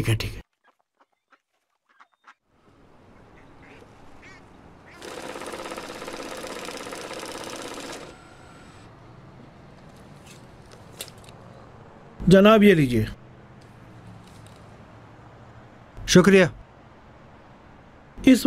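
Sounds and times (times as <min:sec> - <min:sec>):
speech: 0:00.0 - 0:00.4, 0:12.3 - 0:13.2, 0:16.1 - 0:16.6, 0:18.2 - 0:18.4
car engine starting and idling: 0:05.2 - 0:16.8.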